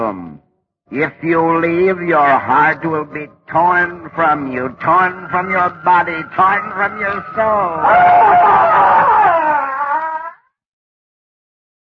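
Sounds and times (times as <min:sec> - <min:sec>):
speech: 0:00.1 - 0:09.1
man screaming: 0:07.1 - 0:10.4.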